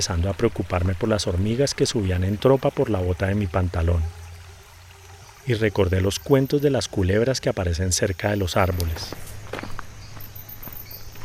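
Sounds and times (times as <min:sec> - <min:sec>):
speech: 0:00.0 - 0:04.2, 0:05.5 - 0:09.4
faint insect-like high chirps: 0:01.5 - 0:11.2
slow footsteps approaching: 0:08.8 - 0:11.2.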